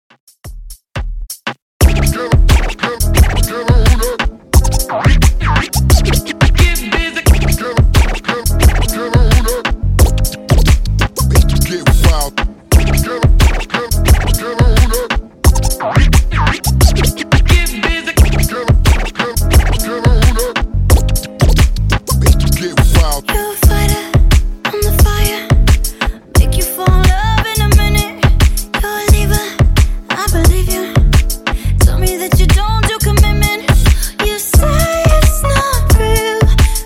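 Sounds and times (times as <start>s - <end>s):
DJ intro outro music at 88 BPM: 1.3s - 36.8s.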